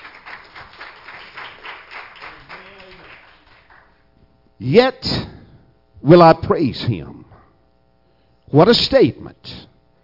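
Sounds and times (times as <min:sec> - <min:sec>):
audience clapping hands: 0:00.0 - 0:04.1
speech: 0:04.6 - 0:05.4, 0:06.0 - 0:07.2, 0:08.5 - 0:09.6.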